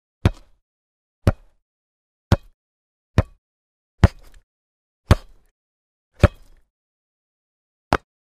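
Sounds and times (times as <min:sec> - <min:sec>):
football ball kick: 0:02.3 - 0:02.6, 0:03.2 - 0:03.4, 0:04.0 - 0:04.4, 0:05.1 - 0:05.4, 0:06.2 - 0:06.6.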